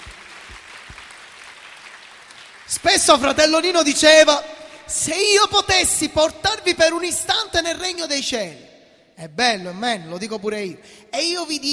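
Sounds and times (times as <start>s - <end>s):
church congregation applauding during a Pentecostal-style service: 0.0s - 3.7s
speech: 2.7s - 11.7s.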